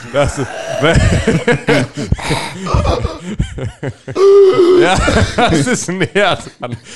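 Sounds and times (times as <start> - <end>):
speech: 0.0 - 6.9
person imitating snoring: 0.4 - 1.1, 2.2 - 3.2, 4.2 - 5.0
laughter: 0.8 - 6.8.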